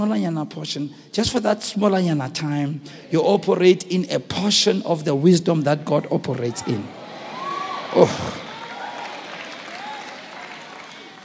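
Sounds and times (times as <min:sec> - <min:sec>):
speech: 0:00.0 - 0:07.0, 0:07.9 - 0:08.4
faint cheering voices: 0:06.4 - 0:11.2
audience clapping: 0:07.4 - 0:11.2.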